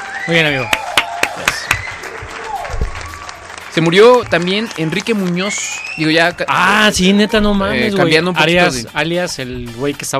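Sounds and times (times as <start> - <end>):
applause sound effect: 0.0 - 6.6
speech: 0.2 - 0.8, 3.8 - 10.1.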